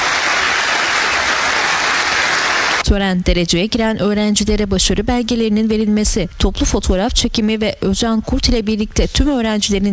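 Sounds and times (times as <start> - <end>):
crowd applause at a university graduation ceremony in Turkey: 0.0 - 2.8
speech: 2.9 - 9.9.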